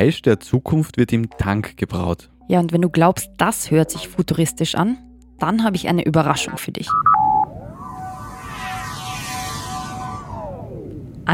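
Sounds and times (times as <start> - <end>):
speech: 0.0 - 7.2
quick electronic beeps of a Star Trek food replicator: 6.4 - 11.0
low rumble: 6.8 - 11.3
rising shimmering whoosh of layered sci-fi tones: 7.5 - 11.1.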